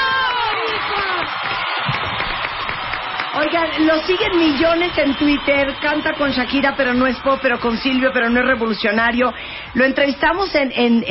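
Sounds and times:
audience applause: 0:00.0 - 0:08.9
cheering and whoops: 0:00.0 - 0:08.9
speech: 0:03.5 - 0:11.0.

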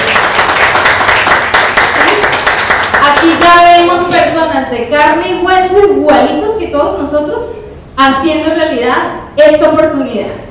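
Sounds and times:
audience applause: 0:00.0 - 0:03.4
speech: 0:04.7 - 0:10.4.

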